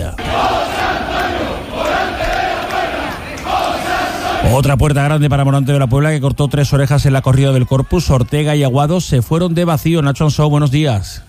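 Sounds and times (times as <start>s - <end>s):
crowd chanting a bullfighter's name in Sevilla: 0.1s - 4.7s
speech: 4.5s - 11.2s.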